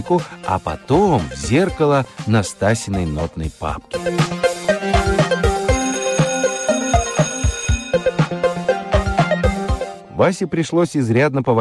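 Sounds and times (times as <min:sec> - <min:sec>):
speech: 0:00.0 - 0:04.5, 0:10.2 - 0:11.5
electronic school bell ringing for the start of class: 0:05.0 - 0:09.6.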